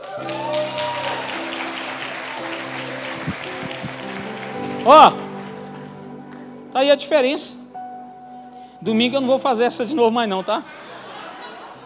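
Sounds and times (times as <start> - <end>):
audience applause: 0.0 - 6.1
sustained low musical tones: 0.0 - 10.2
speech: 4.8 - 5.2, 6.8 - 7.6, 8.8 - 10.8
laughter: 10.5 - 11.8.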